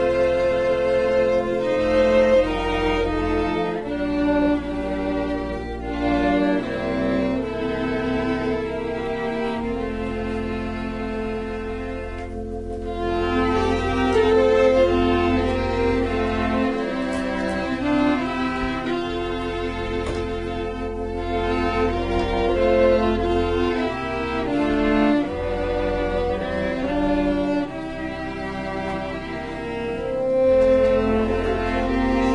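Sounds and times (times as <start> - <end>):
cello in a prelude: 0.0 - 32.3
organ in a prelude: 0.0 - 32.3
violin in a prelude: 0.0 - 32.3.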